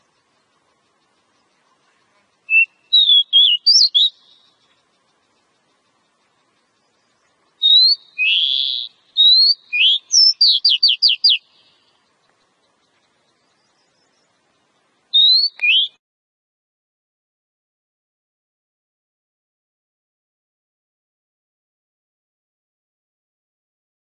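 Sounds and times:
Oriental magpie-robin song used as a lure recording: 0.0 - 16.0.

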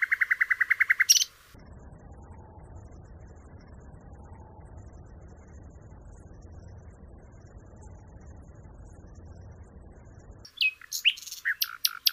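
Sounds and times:
Common nightingale song: 0.0 - 1.5, 10.4 - 12.1.

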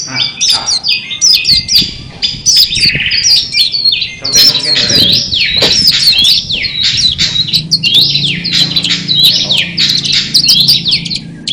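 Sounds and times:
long-tailed shrike song: 0.1 - 11.5.

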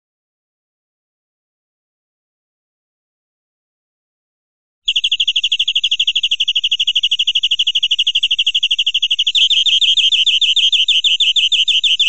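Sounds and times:
European greenfinch buzzy trill: 4.9 - 12.0.

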